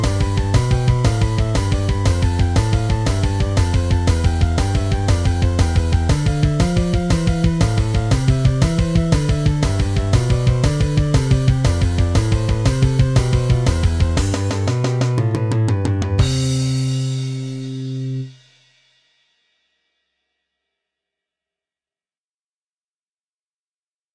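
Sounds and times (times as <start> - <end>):
guitar backing track at 120 BPM: 0.0 - 18.3.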